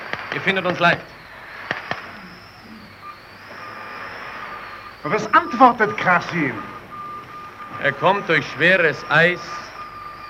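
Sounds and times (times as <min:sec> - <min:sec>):
signal rocket launching: 0:00.0 - 0:07.9
speech: 0:00.4 - 0:01.2, 0:05.0 - 0:06.8, 0:07.8 - 0:09.6.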